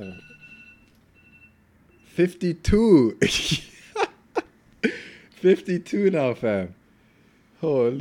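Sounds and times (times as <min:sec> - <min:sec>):
phone alarm going off: 0:00.0 - 0:02.2
speech: 0:02.2 - 0:03.7, 0:05.4 - 0:06.8, 0:07.6 - 0:07.9.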